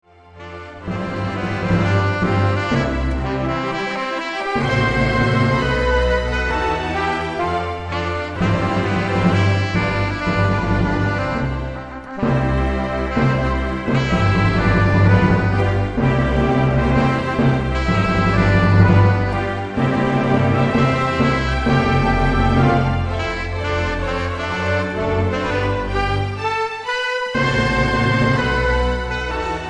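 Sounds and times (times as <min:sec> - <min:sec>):
wedding march on saxophone: 0:00.2 - 0:29.6.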